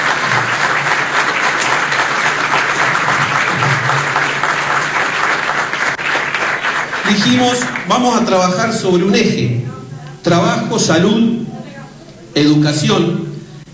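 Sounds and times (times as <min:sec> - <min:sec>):
audience applause: 0:00.0 - 0:09.1
speech: 0:07.1 - 0:11.3, 0:12.4 - 0:13.2.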